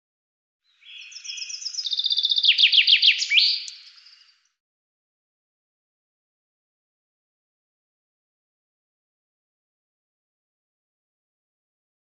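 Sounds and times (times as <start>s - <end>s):
bird giving a fast run of sharp high chirps: 0.7s - 4.6s.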